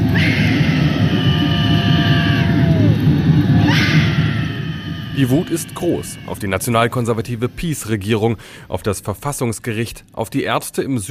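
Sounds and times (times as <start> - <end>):
crowd scream at protest: 0.0 - 7.9
speech: 5.2 - 11.0.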